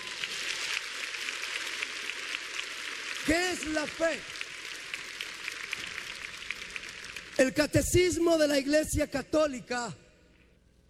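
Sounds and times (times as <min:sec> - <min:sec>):
crowd applauding: 0:00.0 - 0:07.8
speech: 0:03.3 - 0:04.4, 0:07.4 - 0:10.0.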